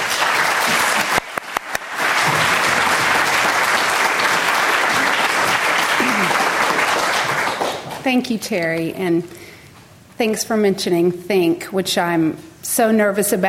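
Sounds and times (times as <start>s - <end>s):
audience applause welcoming a presenter to the stage: 0.0s - 8.1s
speech: 8.1s - 9.4s, 10.2s - 13.4s.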